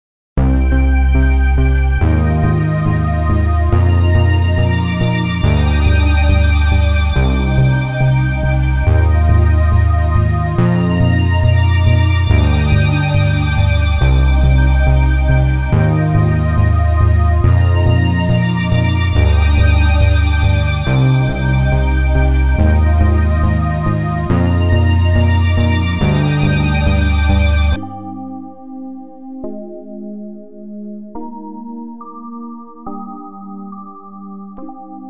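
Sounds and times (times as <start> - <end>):
synthesizer test: 0.4 - 35.0.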